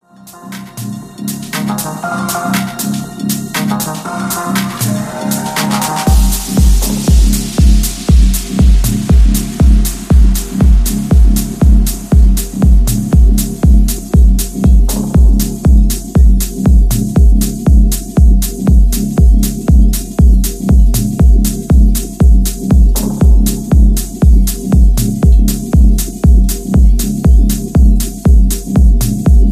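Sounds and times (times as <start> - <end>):
bass: 0.0 - 29.5.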